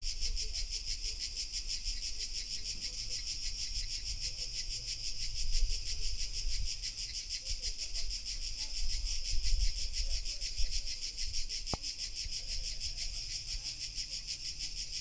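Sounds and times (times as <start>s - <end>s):
cricket chorus in August: 0.0s - 14.9s.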